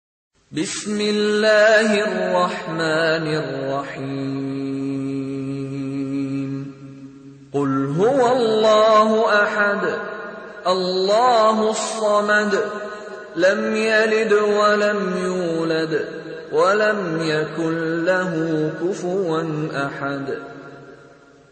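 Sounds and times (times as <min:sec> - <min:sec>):
person reciting a surah: 0:00.5 - 0:20.8.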